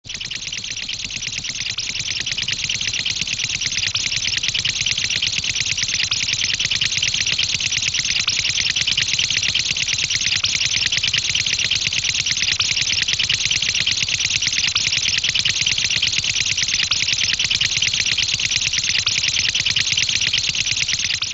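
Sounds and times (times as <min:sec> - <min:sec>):
cartoon engine running: 0:00.1 - 0:21.3.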